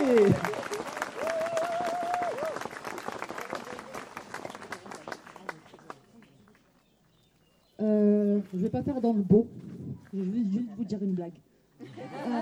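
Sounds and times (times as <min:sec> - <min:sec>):
audience applause: 0:00.0 - 0:06.7
speech: 0:08.8 - 0:12.4
laughter: 0:11.8 - 0:12.4.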